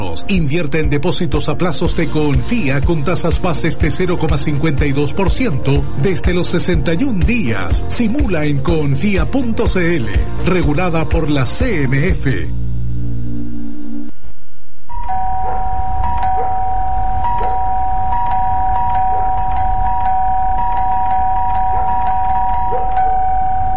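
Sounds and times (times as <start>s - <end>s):
speech: 0.2s - 12.6s
faint low hum: 12.0s - 23.7s
doorbell ringing: 14.9s - 23.7s.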